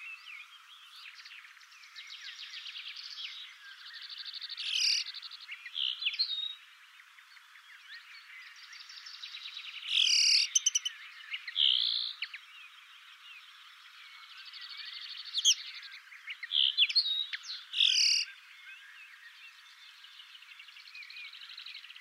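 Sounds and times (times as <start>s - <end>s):
common linnet twittering song: 0.0s - 22.0s.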